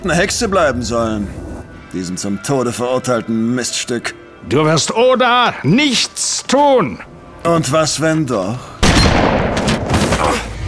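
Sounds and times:
speech: 0.0s - 8.7s
gunfire in a German-language audio drama: 8.8s - 10.5s.

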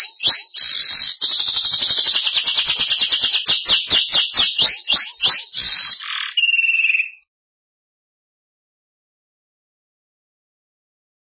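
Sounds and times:
speech: 0.0s - 2.4s
Belgian canary song: 0.0s - 7.3s.

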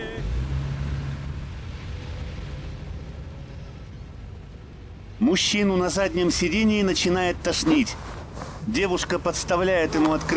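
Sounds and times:
car pulling away: 0.0s - 5.1s
speech: 5.2s - 10.3s.

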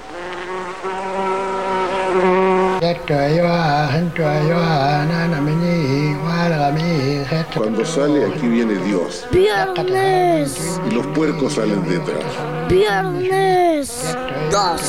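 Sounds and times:
flies buzzing: 0.0s - 14.8s
speech: 2.8s - 14.8s.

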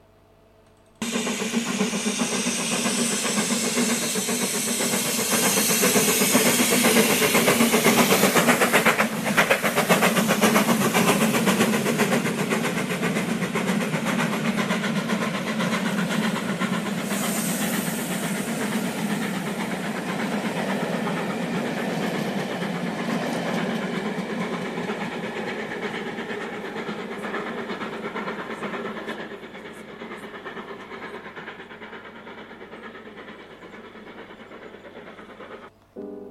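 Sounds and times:
moving train deep rumble: 1.0s - 35.8s.

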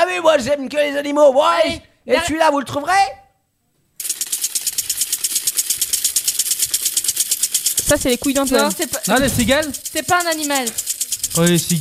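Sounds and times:
speech: 0.1s - 3.2s, 7.9s - 11.7s
automatic lawn sprinkler ticking: 4.0s - 11.7s.

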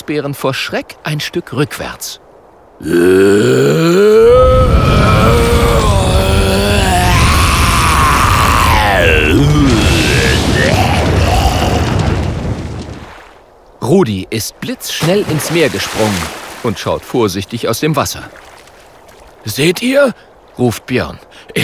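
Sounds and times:
speech: 0.1s - 2.2s, 2.8s - 4.5s, 14.0s - 18.5s, 19.4s - 21.6s
monstrous roar of a fire-breathing creature: 2.8s - 12.8s.

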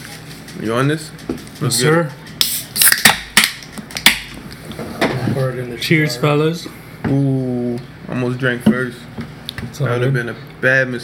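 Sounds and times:
speech: 0.5s - 2.2s, 5.4s - 11.0s
beers being opened: 2.4s - 4.3s.

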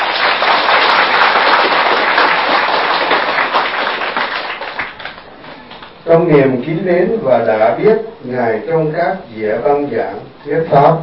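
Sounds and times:
audience applause: 0.0s - 5.9s
speech: 6.1s - 11.0s.

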